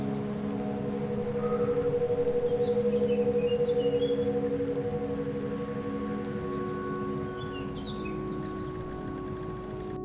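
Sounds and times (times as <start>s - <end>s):
African trance drum circle drumming: 0.1s - 10.0s.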